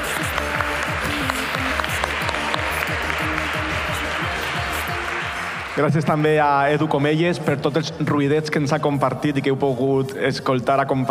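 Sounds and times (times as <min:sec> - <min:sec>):
audience applause: 0:00.0 - 0:06.8
speech: 0:05.8 - 0:11.0.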